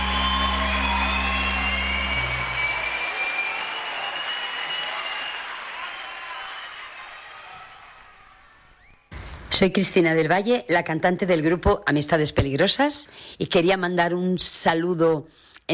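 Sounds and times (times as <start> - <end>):
audience applause: 0.0 - 8.9
speech: 9.6 - 15.7.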